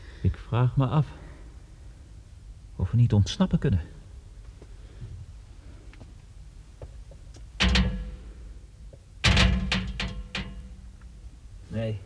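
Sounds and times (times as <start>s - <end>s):
speech: 0.5s - 1.2s, 2.8s - 4.0s
faint clicks and knocks: 5.9s - 11.2s
gate in a dark hollow under a mountain shaken and tugged: 7.6s - 8.5s, 9.2s - 11.2s.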